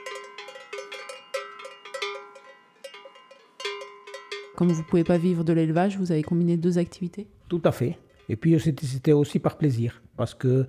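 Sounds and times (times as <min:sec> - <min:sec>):
bells clanking on grazing mountain livestock: 0:00.0 - 0:07.0, 0:07.8 - 0:09.0
speech: 0:04.6 - 0:10.6.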